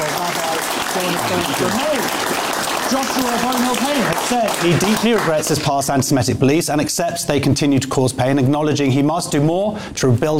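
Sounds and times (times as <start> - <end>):
audience applause: 0.0 - 5.9
speech: 1.0 - 10.3.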